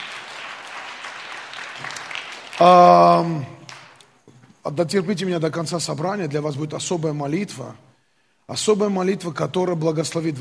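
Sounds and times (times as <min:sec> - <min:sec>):
audience applause: 0:00.0 - 0:04.0
speech: 0:02.6 - 0:03.6, 0:04.7 - 0:07.9, 0:08.5 - 0:10.4.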